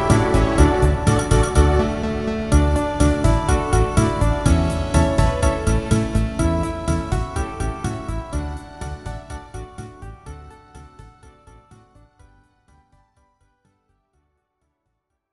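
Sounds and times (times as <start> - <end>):
children's songs playback: 0.0 - 10.0.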